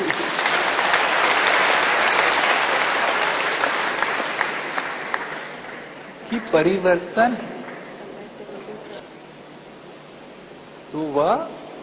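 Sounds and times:
audience clapping: 0.0s - 8.9s
speech: 6.5s - 7.6s, 11.0s - 11.6s.

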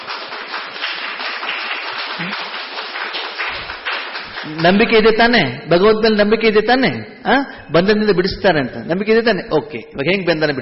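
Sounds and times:
audience clapping loudly at a devotional gathering: 0.0s - 5.3s
speech: 4.5s - 10.6s.

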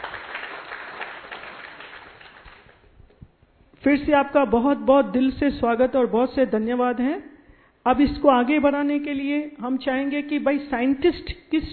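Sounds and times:
audience applauding: 0.0s - 2.8s
speech: 3.8s - 11.7s.

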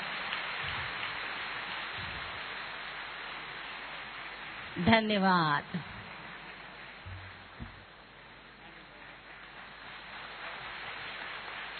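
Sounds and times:
audience clapping loudly: 0.0s - 11.7s
speech: 4.8s - 5.9s.

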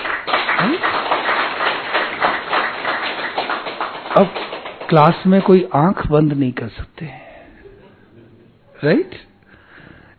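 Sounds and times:
audience clapping: 0.0s - 5.8s
speech: 4.2s - 7.2s, 8.8s - 9.3s.

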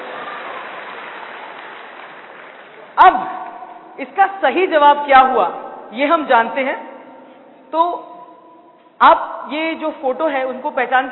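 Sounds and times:
audience clapping loudly: 0.0s - 3.9s
speech: 3.0s - 3.4s, 4.0s - 6.9s, 7.7s - 8.1s, 9.0s - 11.1s.

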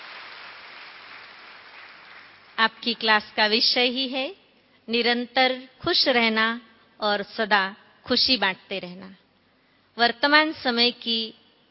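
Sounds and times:
audience applause welcoming a respected guest speaker: 0.0s - 2.6s
speech: 2.6s - 9.2s, 10.0s - 11.4s.

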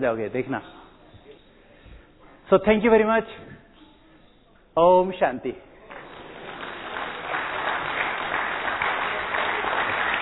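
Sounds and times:
speech: 0.0s - 0.8s, 2.5s - 3.6s, 4.8s - 5.7s
audience clapping loudly: 5.9s - 10.2s.

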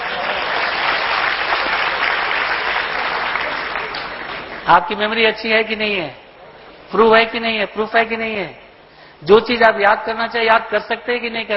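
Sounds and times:
audience clapping: 0.0s - 4.8s
speech: 4.7s - 6.2s, 6.9s - 8.6s, 9.2s - 11.5s.

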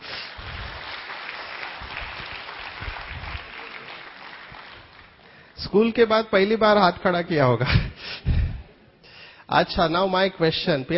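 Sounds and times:
audience clapping: 0.0s - 5.6s
speech: 5.6s - 8.3s, 9.5s - 10.9s.

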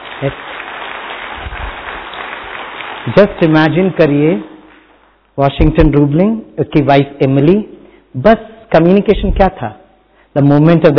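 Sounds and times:
audience applause: 0.0s - 5.0s
speech: 0.2s - 0.5s, 3.0s - 4.5s, 5.4s - 10.9s.

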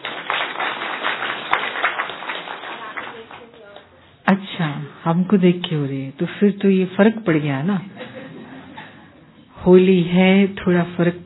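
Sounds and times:
audience clapping: 0.0s - 3.9s
speech: 5.0s - 8.1s, 9.6s - 11.2s
laughter: 7.9s - 9.4s.

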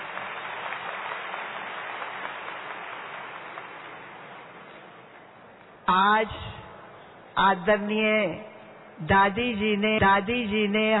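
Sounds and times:
audience clapping: 0.0s - 5.1s
speech: 5.9s - 6.6s, 7.4s - 10.9s.

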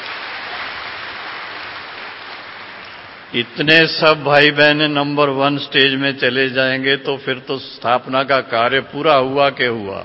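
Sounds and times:
audience clapping: 0.0s - 3.4s
speech: 3.3s - 10.0s.

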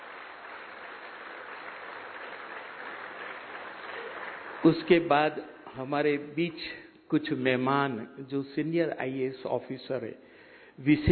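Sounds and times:
audience clapping: 0.0s - 5.8s
speech: 4.6s - 11.1s.

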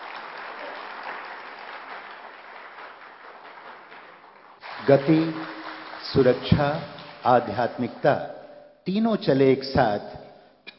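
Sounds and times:
crowd applauding welcoming a singing group: 0.0s - 8.2s
speech: 4.8s - 5.5s, 6.1s - 10.2s.

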